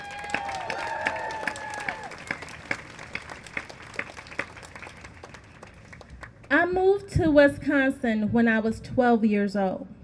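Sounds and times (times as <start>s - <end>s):
crowd whistles and cheers: 0.0s - 2.5s
crowd applause: 0.0s - 6.4s
speech: 6.6s - 9.9s.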